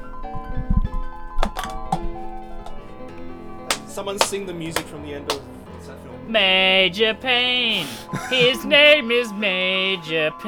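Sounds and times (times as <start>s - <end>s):
cup thrown against a door: 1.4s - 2.8s, 3.7s - 5.5s
laughter: 3.7s - 10.4s
speech: 4.0s - 10.4s.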